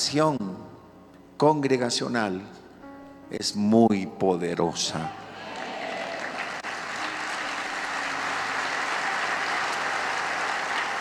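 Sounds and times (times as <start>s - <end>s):
speech: 0.0s - 0.6s, 1.4s - 2.6s, 3.3s - 5.2s
audience applauding: 5.2s - 11.0s.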